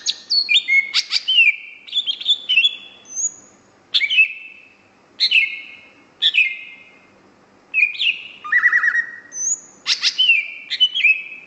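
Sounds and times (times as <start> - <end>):
greater green leafbird singing whistles and rattling trills: 0.0 - 7.0, 7.7 - 11.4.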